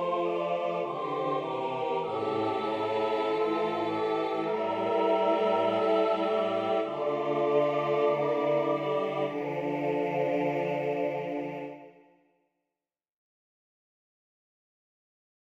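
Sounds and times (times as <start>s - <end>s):
fugue: 0.0s - 12.0s.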